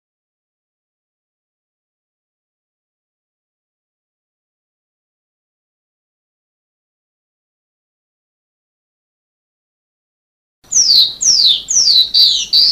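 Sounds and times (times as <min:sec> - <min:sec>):
sanma bird high upslurred notes and trill: 0:10.7 - 0:12.7.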